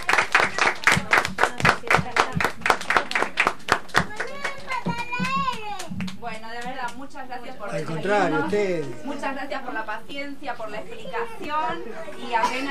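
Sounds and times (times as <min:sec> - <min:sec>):
children clapping: 0:00.0 - 0:07.0
speech: 0:07.8 - 0:12.7.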